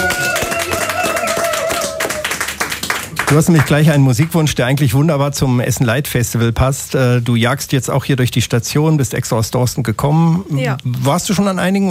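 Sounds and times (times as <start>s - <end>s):
people cheering: 0.0s - 3.7s
audience clapping: 0.0s - 4.2s
speech: 3.3s - 11.8s.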